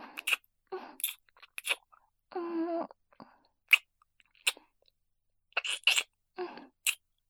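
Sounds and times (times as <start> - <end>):
soft wet kissing with lip smacks: 0.2 - 1.9, 3.7 - 4.7, 5.6 - 6.1, 6.8 - 7.0.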